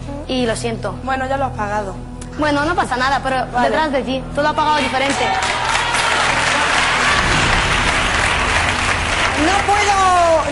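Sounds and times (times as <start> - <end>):
speech: 0.3 - 5.6
applause: 4.9 - 10.4.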